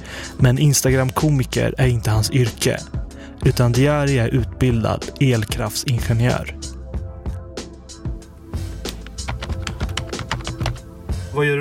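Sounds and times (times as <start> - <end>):
speech: 0.4 - 6.7, 11.4 - 11.6
typing an email on a computer keyboard: 8.9 - 10.8.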